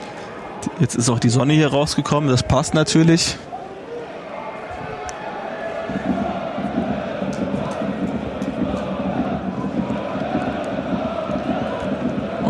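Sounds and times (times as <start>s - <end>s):
football fans cheering and chanting in stadium: 0.0s - 12.4s
speech: 0.6s - 3.5s
people shouting in stadium crowd: 4.0s - 12.4s.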